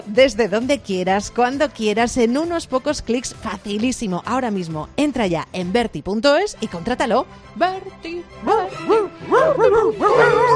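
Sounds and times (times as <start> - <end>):
speech: 0.1 - 10.5
small dog whimpering: 8.5 - 10.5.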